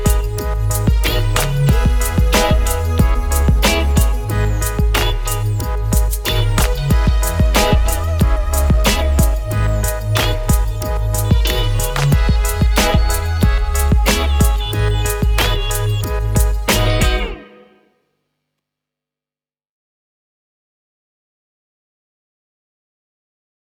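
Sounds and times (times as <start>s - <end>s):
instrumental music: 0.0s - 17.9s.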